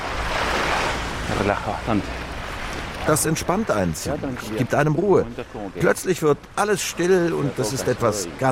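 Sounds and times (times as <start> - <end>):
ocean waves rushing at the southern tip of the Americas in Tierra del Fuego: 0.0 - 8.4
wind: 0.0 - 8.4
speech: 1.3 - 2.2, 3.1 - 8.4.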